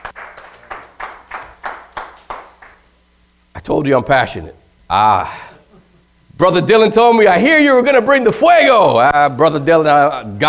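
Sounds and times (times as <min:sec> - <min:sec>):
audience clapping hands in unison: 0:00.0 - 0:02.9
speech: 0:03.6 - 0:05.5, 0:06.4 - 0:10.4.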